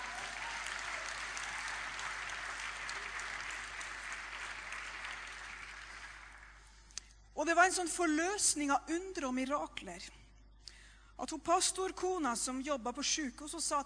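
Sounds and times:
audience applause: 0.0 - 6.7
speech: 7.4 - 10.2, 11.2 - 13.8.

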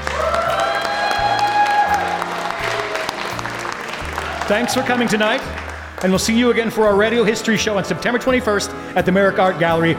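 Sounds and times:
audience applause: 0.0 - 6.7
speech: 4.5 - 9.9.

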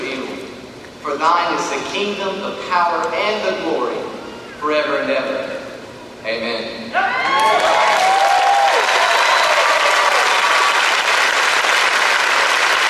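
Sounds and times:
speech: 1.2 - 5.6, 6.2 - 8.0
crowd applauding: 7.2 - 12.8.

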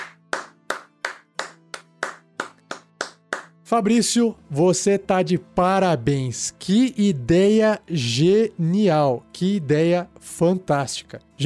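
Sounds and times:
hand clapping by one person: 0.0 - 3.6
speech: 3.7 - 11.4.

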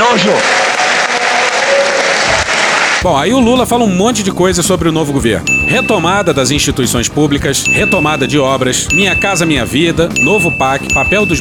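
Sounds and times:
speech: 0.0 - 0.6, 3.0 - 11.3
crowd applause: 0.0 - 3.0.

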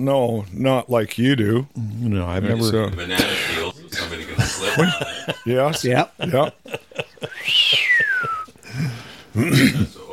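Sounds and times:
speech: 0.0 - 3.6, 4.4 - 6.8, 8.8 - 10.0
laughter: 2.7 - 8.6
slide whistle being played: 7.4 - 8.5.

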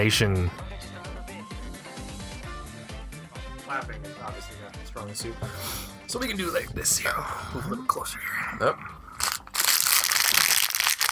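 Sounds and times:
speech: 0.0 - 0.7, 3.7 - 8.9
plastic Halloween candy wrapper crinkling: 9.2 - 11.1.

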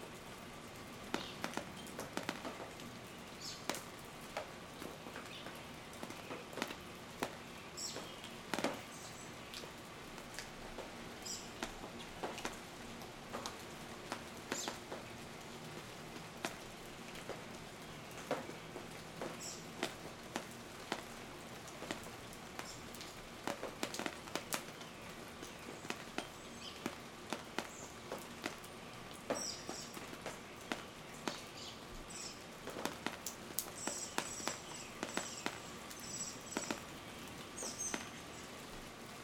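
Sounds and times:
rain dripping: 0.0 - 39.2
birds: 1.1 - 2.0, 3.0 - 3.8, 4.7 - 10.4, 11.2 - 12.6, 14.5 - 15.0, 17.8 - 19.8, 23.9 - 27.0, 27.6 - 32.5, 33.6 - 38.6.

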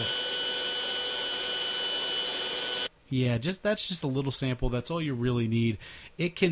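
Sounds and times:
cutting machine running on wood: 0.0 - 2.9
speech: 3.1 - 6.5.

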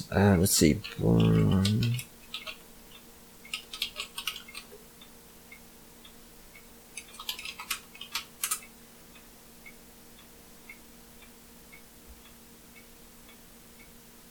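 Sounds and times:
person speaking: 0.0 - 2.1
computer keyboard typing a search into Google: 0.8 - 2.6, 3.4 - 4.8, 7.0 - 8.7.

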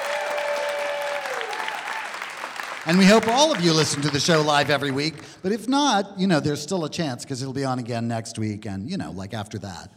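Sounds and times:
audience applause: 0.0 - 5.4
speech: 2.8 - 9.9.

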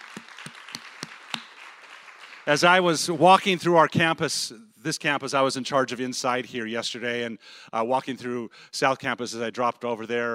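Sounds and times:
audience applause for volunteer work crew: 0.0 - 2.9
speech: 2.5 - 10.3.

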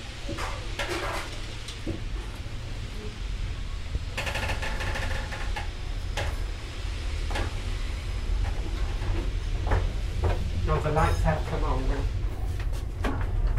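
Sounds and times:
hiss of steam from a train pulling out of Paddington Station: 0.0 - 13.4.

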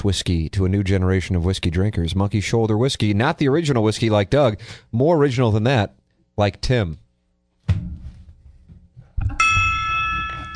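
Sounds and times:
speech: 0.0 - 7.0
gong being struck: 9.3 - 10.5.

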